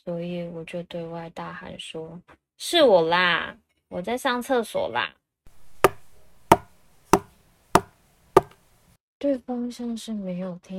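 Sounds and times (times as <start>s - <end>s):
speech: 0.0s - 5.2s, 9.2s - 10.7s
knocking on a door: 5.5s - 8.6s.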